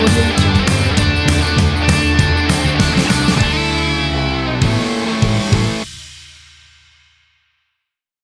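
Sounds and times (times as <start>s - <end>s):
happy rock music: 0.0s - 6.0s.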